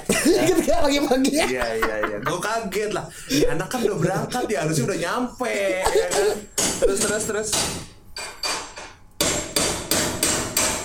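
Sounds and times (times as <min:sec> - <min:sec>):
laughter: 0:00.0 - 0:06.5
speech: 0:00.1 - 0:08.0
hammering while repairing an aircraft tire: 0:06.0 - 0:10.8.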